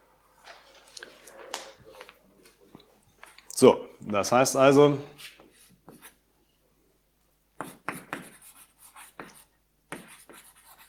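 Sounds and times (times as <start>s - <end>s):
speech: 3.6s - 5.2s
writing strokes drawing a logic tableau: 5.2s - 6.2s, 7.6s - 10.8s.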